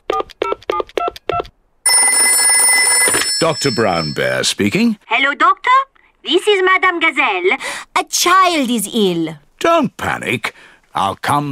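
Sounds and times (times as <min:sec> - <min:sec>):
electronic phone keypad beeps: 0:00.1 - 0:04.0
speech: 0:03.4 - 0:11.5.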